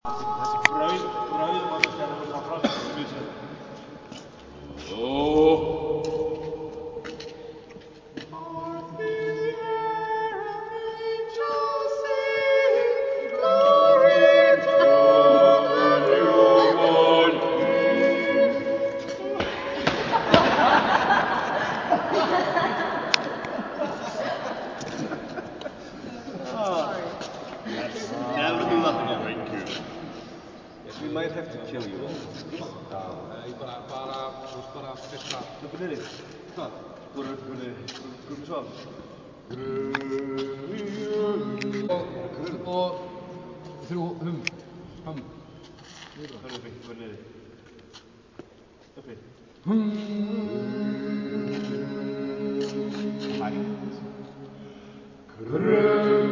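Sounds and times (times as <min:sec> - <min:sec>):
a cappella singing in a church: 0:00.0 - 0:03.2, 0:04.5 - 0:07.4, 0:08.2 - 0:25.1, 0:39.5 - 0:43.4, 0:49.6 - 0:56.2
laughter: 0:19.3 - 0:29.2.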